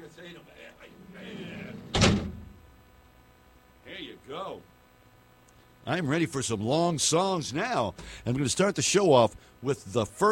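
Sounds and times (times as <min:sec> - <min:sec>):
low hum: 0:00.0 - 0:10.2
big heavy door slamming shut: 0:01.2 - 0:02.6
speech: 0:05.8 - 0:10.2.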